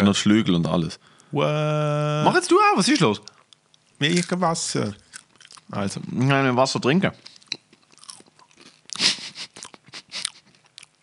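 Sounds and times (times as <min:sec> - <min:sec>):
speech: 0:00.1 - 0:03.3, 0:04.0 - 0:05.0, 0:05.7 - 0:07.3
person crunching while chewing crickets: 0:03.2 - 0:06.1, 0:07.2 - 0:11.0.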